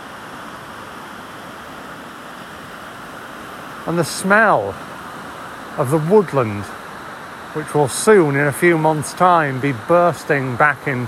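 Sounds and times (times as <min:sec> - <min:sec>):
river water crashing over rocks: 0:03.4 - 0:11.0
speech: 0:03.9 - 0:04.9, 0:05.8 - 0:06.8, 0:07.6 - 0:11.0.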